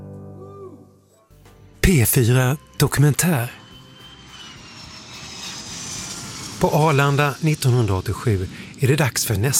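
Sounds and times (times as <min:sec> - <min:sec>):
speech: 0:01.8 - 0:03.6, 0:06.6 - 0:09.5
airplane landing at Arlanda airport in 1987: 0:01.8 - 0:09.5.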